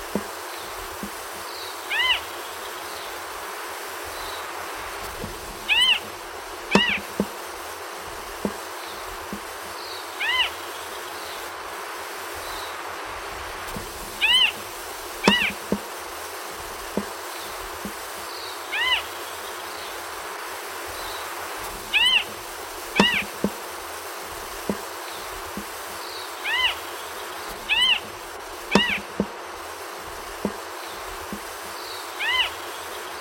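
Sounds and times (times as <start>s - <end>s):
Fiji harrier calling: 0.0s - 2.7s, 4.3s - 10.9s, 13.8s - 16.1s, 17.0s - 19.3s, 21.2s - 23.9s, 24.7s - 33.1s.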